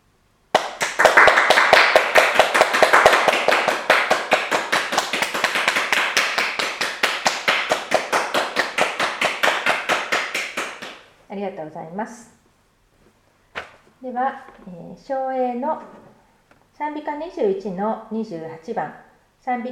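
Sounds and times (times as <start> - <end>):
audience applause: 0.6 - 11.0
speech: 11.7 - 12.4, 14.1 - 16.0, 16.8 - 19.7.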